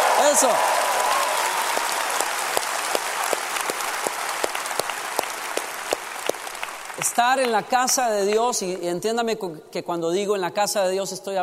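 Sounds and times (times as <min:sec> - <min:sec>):
audience shouting: 0:00.0 - 0:02.2
audience applauding: 0:00.0 - 0:08.6
speech: 0:00.3 - 0:00.8, 0:07.1 - 0:11.4.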